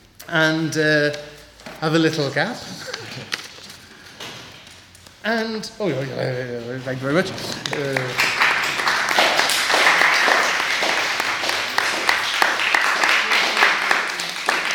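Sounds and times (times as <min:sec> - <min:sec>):
speech: 0:00.3 - 0:02.8, 0:05.2 - 0:08.4
audience clapping: 0:07.3 - 0:14.7.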